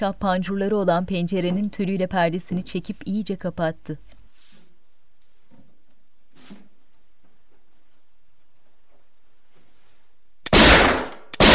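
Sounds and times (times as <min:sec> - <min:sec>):
speech: 0:00.0 - 0:04.2
gunshots fired inside a room: 0:10.5 - 0:11.5.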